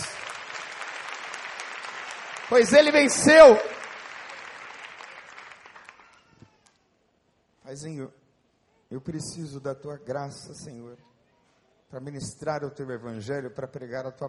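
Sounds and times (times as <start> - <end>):
audience applause: 0.0 - 6.5
speech: 2.5 - 3.8, 7.7 - 8.2, 8.9 - 11.1, 11.9 - 14.2.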